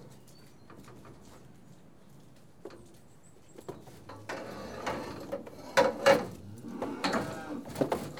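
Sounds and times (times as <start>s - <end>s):
farm cattle mooing while being tested: 4.4s - 7.8s.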